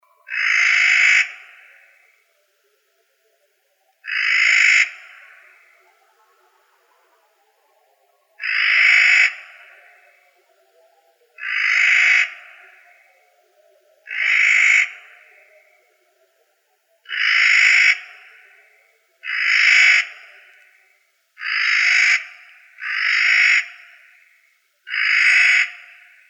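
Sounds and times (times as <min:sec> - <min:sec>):
corvids calling: 0:00.3 - 0:02.1, 0:04.0 - 0:05.7, 0:08.4 - 0:10.0, 0:11.4 - 0:13.0, 0:14.1 - 0:15.5, 0:17.1 - 0:18.5, 0:19.2 - 0:20.6, 0:21.4 - 0:26.2.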